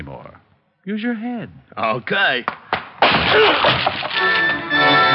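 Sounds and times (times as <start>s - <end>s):
speech: 0.8s - 4.6s
plywood door being smashed open: 2.8s - 4.7s
debris clattering: 3.0s - 5.0s.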